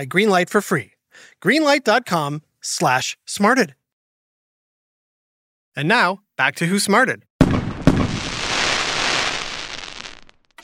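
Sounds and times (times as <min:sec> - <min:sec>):
speech: 0:00.0 - 0:03.8, 0:05.8 - 0:07.3
fireworks exploding: 0:07.4 - 0:10.6.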